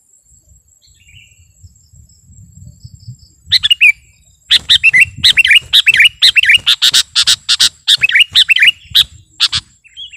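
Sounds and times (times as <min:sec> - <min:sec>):
thin high insect hum: 0:00.0 - 0:10.1
sooty-headed bulbul singing: 0:03.5 - 0:10.1.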